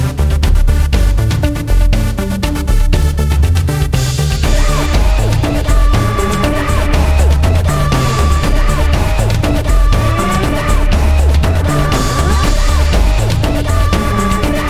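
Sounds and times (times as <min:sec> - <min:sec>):
heavy bass music: 0:00.0 - 0:14.6.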